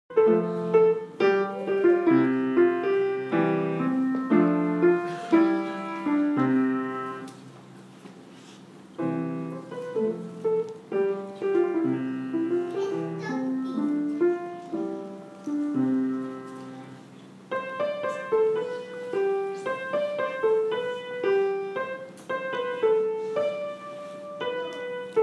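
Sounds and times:
piano house music at a concert: 0.1s - 7.6s, 8.8s - 25.2s.

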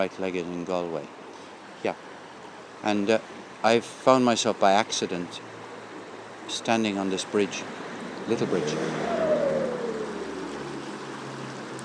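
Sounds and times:
speech: 0.0s - 1.2s, 1.8s - 2.1s, 2.8s - 5.5s, 6.5s - 9.4s
rushing hiss: 0.0s - 11.8s
car driving past: 7.4s - 11.8s.

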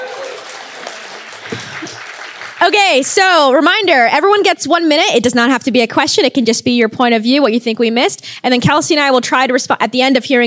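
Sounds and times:
audience applause at a talk event: 0.0s - 3.1s
speech: 2.6s - 10.4s.

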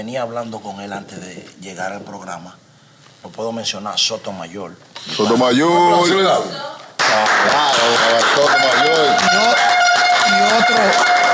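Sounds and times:
speech: 0.0s - 11.1s
applause: 7.0s - 11.3s.

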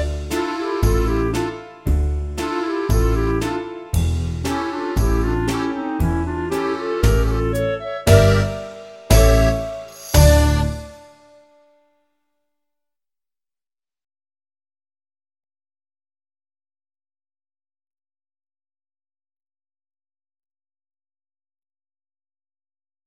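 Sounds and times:
gypsy fiddle backing track: 0.0s - 11.1s.

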